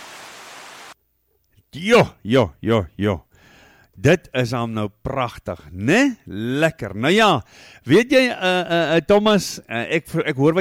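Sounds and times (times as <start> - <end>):
rainfall on a corrugated iron roof in the Sandveld: 0.0 - 1.0
speech: 1.7 - 3.3, 4.0 - 10.5.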